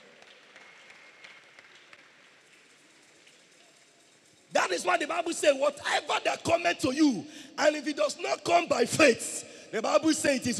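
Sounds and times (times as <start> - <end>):
audience clapping hands: 0.0 - 3.8
speech: 4.7 - 10.5.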